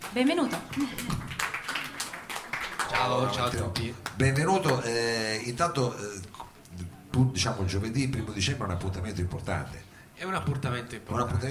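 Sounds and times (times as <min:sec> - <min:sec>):
audience applause: 0:00.0 - 0:04.8
speech: 0:00.2 - 0:01.3, 0:02.9 - 0:11.5.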